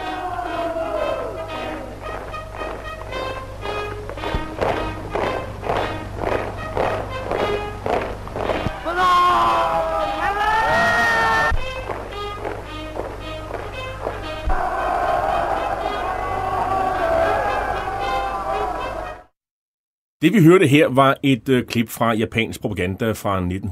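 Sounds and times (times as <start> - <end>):
crowd cheering and shouting: 0.0 - 2.0, 8.6 - 11.6, 14.4 - 19.3
rhythmic tramp of marching boots: 2.0 - 9.6, 11.5 - 15.0
speech: 20.2 - 23.7.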